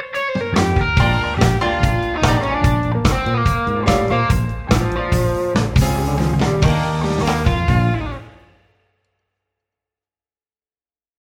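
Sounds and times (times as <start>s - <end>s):
rock guitar I chord: 0.0s - 8.6s.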